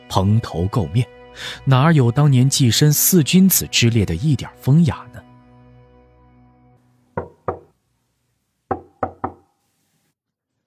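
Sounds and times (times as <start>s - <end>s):
speech: 0.1s - 5.2s
knocking on a door: 7.2s - 7.7s, 8.7s - 9.4s.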